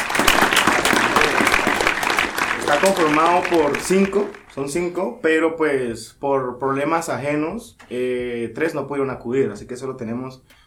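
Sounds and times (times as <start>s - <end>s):
audience applause: 0.0s - 4.9s
speech: 2.8s - 10.6s.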